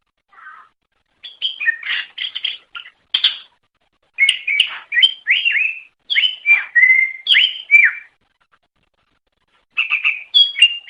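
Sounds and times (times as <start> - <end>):
leafbird chattering whistled song: 1.2 - 3.5, 4.2 - 8.1, 9.8 - 10.8.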